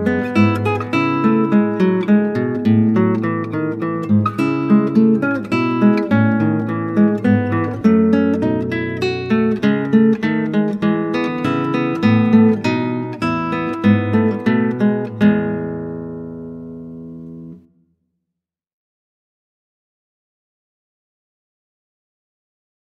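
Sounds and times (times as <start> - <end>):
classical guitar: 0.0 - 17.7.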